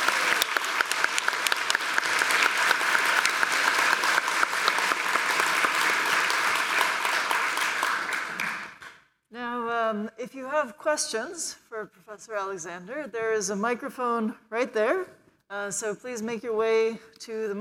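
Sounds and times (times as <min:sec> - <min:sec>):
crowd clapping: 0:00.0 - 0:09.0
speech: 0:10.6 - 0:17.5.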